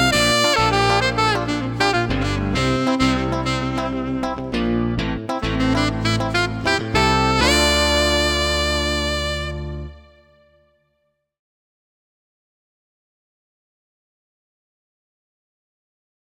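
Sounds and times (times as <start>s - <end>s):
rock funk music: 0.0s - 10.0s.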